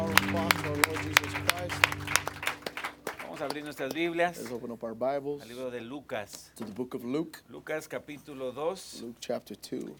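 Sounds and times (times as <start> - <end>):
audience applause: 0.0 - 4.5
speech: 3.4 - 9.9.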